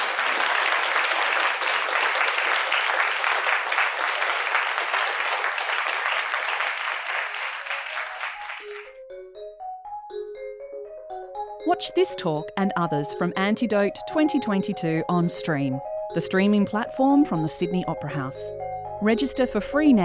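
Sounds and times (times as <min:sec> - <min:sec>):
audience round of applause: 0:00.0 - 0:08.9
speech: 0:11.7 - 0:20.0.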